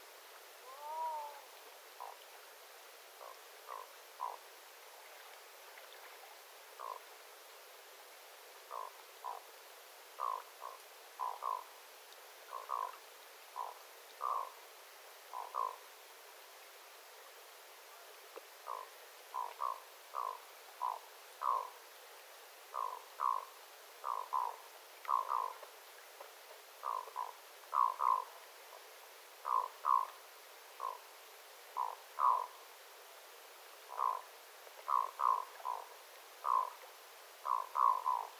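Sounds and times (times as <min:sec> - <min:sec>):
black-throated loon croaking: 0:00.6 - 0:01.4, 0:03.2 - 0:04.4, 0:06.8 - 0:07.0, 0:08.7 - 0:09.4, 0:10.2 - 0:11.7, 0:13.6 - 0:14.5, 0:15.3 - 0:15.8, 0:18.7 - 0:21.7, 0:22.8 - 0:25.6, 0:26.8 - 0:28.3, 0:29.4 - 0:30.1, 0:30.8 - 0:31.0, 0:31.8 - 0:32.5, 0:33.9 - 0:34.2, 0:34.9 - 0:36.8, 0:37.4 - 0:38.3.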